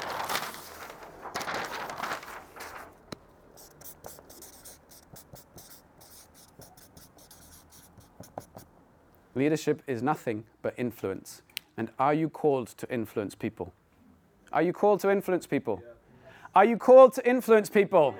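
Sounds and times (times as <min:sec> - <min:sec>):
handwriting strokes: 0:03.5 - 0:08.7
speech: 0:09.4 - 0:13.8, 0:14.6 - 0:18.1.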